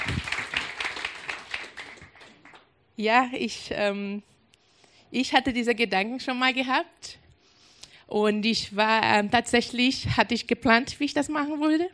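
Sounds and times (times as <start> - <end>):
audience applause: 0.0 - 2.6
speech: 3.0 - 4.3, 5.1 - 7.2, 8.1 - 11.9.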